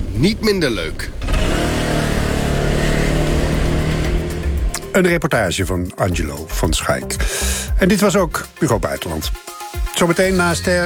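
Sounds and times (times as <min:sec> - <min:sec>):
125cc scooter engine revving: 0:00.0 - 0:04.8
speech: 0:00.2 - 0:02.0, 0:05.0 - 0:09.4, 0:10.0 - 0:10.8.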